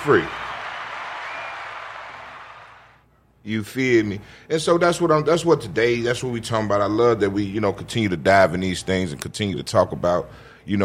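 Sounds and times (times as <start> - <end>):
speech: 0.0 - 0.4, 3.4 - 10.8
group hand clapping: 0.0 - 3.0.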